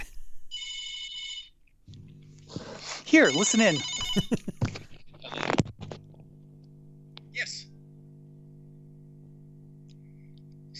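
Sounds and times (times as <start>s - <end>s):
phone ringing with a shrill electronic trill: 0.5s - 1.6s, 3.1s - 4.6s
speech: 3.1s - 4.8s.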